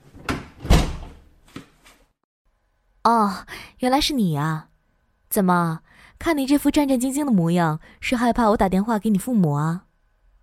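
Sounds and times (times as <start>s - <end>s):
door shutting: 0.0s - 1.7s
speech: 3.1s - 4.7s, 5.3s - 9.9s.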